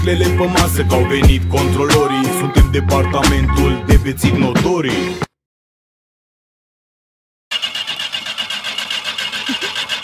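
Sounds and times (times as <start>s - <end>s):
speech: 0.0s - 5.3s
car engine being cranked and turning over: 7.5s - 10.0s.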